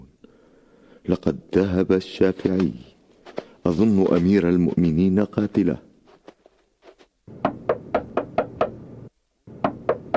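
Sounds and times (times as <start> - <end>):
speech: 1.1 - 2.9, 3.7 - 5.9
knocking on a door: 7.4 - 8.8, 9.6 - 10.1.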